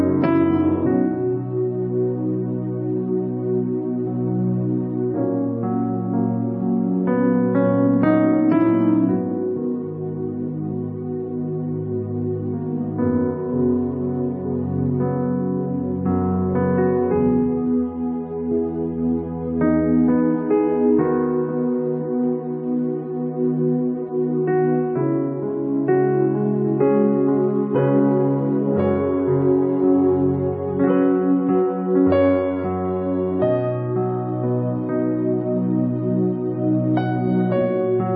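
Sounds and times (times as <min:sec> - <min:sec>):
instrumental soaking piano music: 0:00.0 - 0:38.1.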